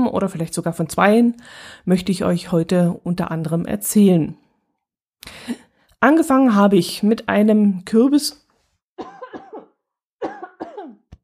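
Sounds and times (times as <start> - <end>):
speech: 0.2 - 4.4, 5.2 - 8.4
person coughing after choking on own saliva: 9.0 - 11.1.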